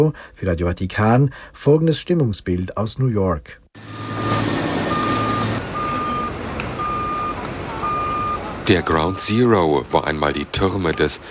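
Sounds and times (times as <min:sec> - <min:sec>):
speech: 0:00.0 - 0:04.6, 0:08.7 - 0:11.2
construction site machinery noise: 0:03.8 - 0:11.2
heavy engine rumble: 0:03.8 - 0:11.2
truck reversing alarm beeps at a construction site: 0:03.8 - 0:11.2.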